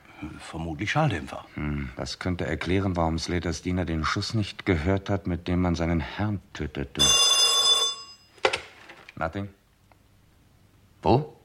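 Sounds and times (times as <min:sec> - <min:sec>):
speech: 0:00.2 - 0:07.4, 0:09.2 - 0:09.6, 0:11.0 - 0:11.3
old telephone bell ringing: 0:07.0 - 0:08.4.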